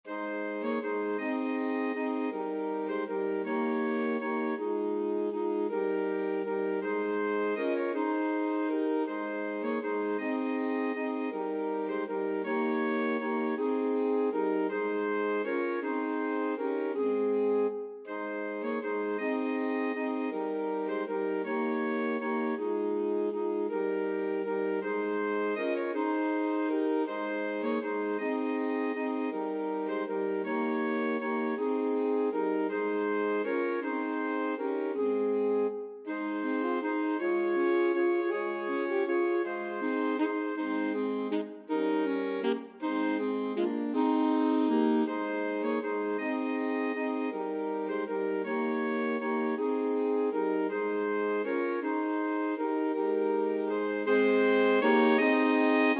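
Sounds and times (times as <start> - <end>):
alto saxophone quartet: 0.0 - 55.9.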